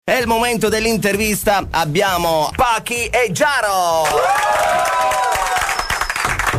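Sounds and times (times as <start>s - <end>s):
speech: 0.2s - 5.2s
audience applause for two guests arriving for an interview: 4.0s - 6.5s.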